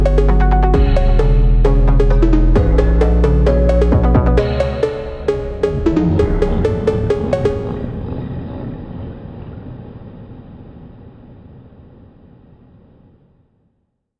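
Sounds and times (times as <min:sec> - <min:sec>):
dark phonk music: 0:00.0 - 0:08.0.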